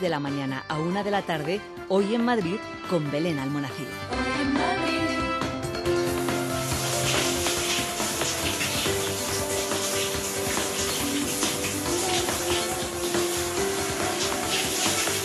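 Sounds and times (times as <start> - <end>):
speech: 0.0 - 5.0
running shower water: 5.9 - 15.2.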